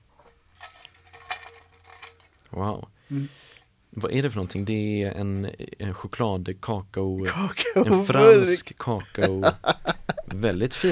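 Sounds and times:
jar of paper slips being shaken: 0.0s - 2.6s
speech: 2.6s - 10.9s
laughter: 7.2s - 10.9s.

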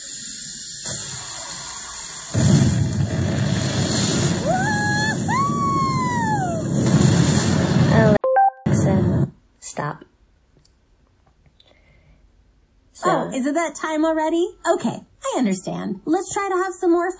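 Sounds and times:
Barbie playset toy rocket launch rumble: 0.0s - 8.2s
short beeps from a Barbie playset: 8.2s - 8.7s
speech: 13.4s - 17.1s.

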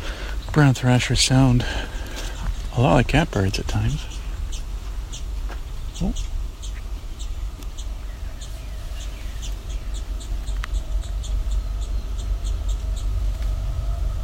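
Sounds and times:
speech: 0.5s - 1.9s, 2.8s - 4.1s, 6.0s - 6.3s
young towhee calls: 3.7s - 14.2s.

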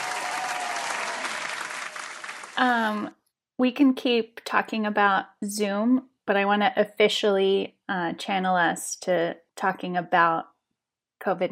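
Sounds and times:
canned applause sound effect: 0.0s - 3.0s
speech: 2.6s - 10.5s, 11.2s - 11.5s.

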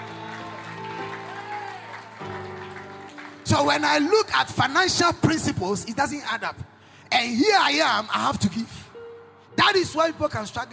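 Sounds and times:
audience clapping: 0.0s - 4.8s
speech: 3.5s - 8.8s, 9.7s - 10.7s.

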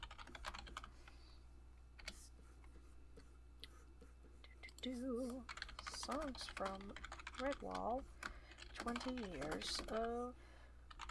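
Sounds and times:
typing a search on a computer keyboard: 0.0s - 0.9s, 5.5s - 10.2s, 10.9s - 11.0s
speech: 4.8s - 8.2s, 8.8s - 10.5s.

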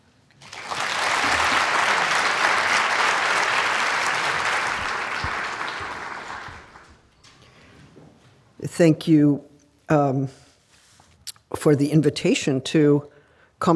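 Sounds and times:
welcoming applause from a packed audience: 0.4s - 7.1s
speech: 8.8s - 10.5s, 11.6s - 13.7s.

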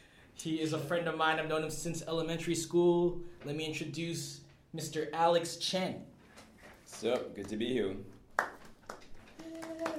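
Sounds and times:
speech: 0.4s - 6.1s, 6.9s - 8.5s
person clapping hands: 7.0s - 9.9s.

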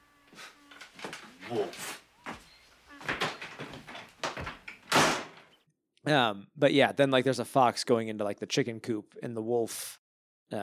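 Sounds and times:
door being slammed shut: 3.1s - 5.5s
speech: 6.1s - 10.6s.

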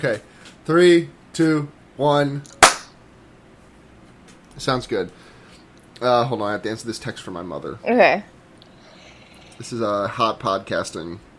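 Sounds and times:
speech: 0.0s - 2.6s, 4.6s - 5.2s, 6.0s - 8.3s, 9.6s - 11.3s
single hand clap for syncing: 2.6s - 2.9s.

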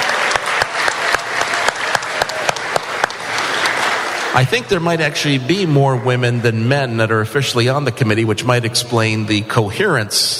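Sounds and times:
audience applause: 0.0s - 5.0s
speech: 4.4s - 10.3s.

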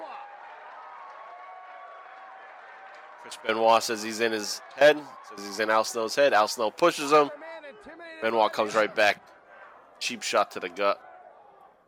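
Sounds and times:
wrestling crowd clapping politely: 0.0s - 5.5s
speech: 3.2s - 9.3s, 10.0s - 11.1s.

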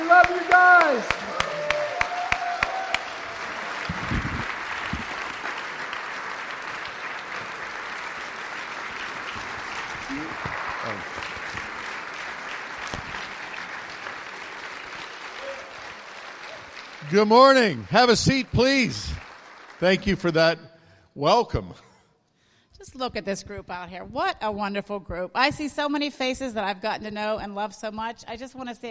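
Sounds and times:
large crowd applauding: 0.0s - 20.6s
scattered cheers and whoops: 0.2s - 3.9s, 15.3s - 16.8s
speech: 17.2s - 19.2s, 19.8s - 21.8s, 23.0s - 28.8s.

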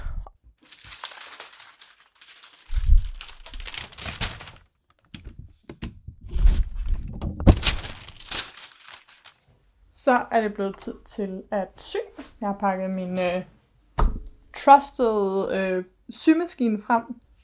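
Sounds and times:
chiffon fabric crinkling: 0.6s - 5.1s, 6.3s - 9.5s
speech: 10.0s - 13.6s, 14.6s - 17.3s.

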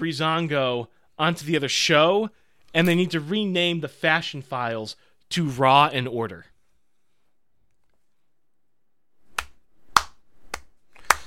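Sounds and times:
speech: 0.0s - 6.5s
slow clap: 9.3s - 11.2s.

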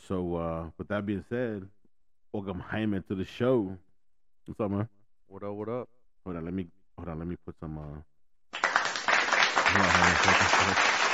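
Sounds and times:
speech: 0.1s - 3.9s, 4.5s - 8.6s, 9.7s - 11.1s
audience applause sound effect: 8.6s - 11.1s.

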